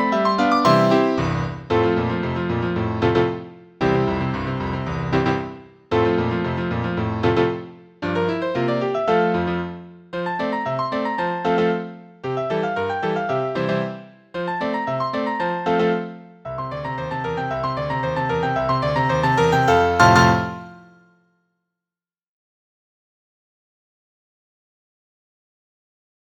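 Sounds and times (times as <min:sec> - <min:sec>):
piano etude-caprice: 0:00.0 - 0:21.0.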